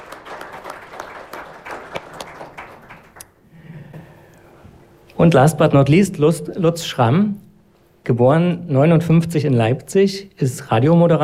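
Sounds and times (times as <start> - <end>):
audience applause: 0.0 - 3.4
speech: 5.2 - 7.4, 8.0 - 11.2.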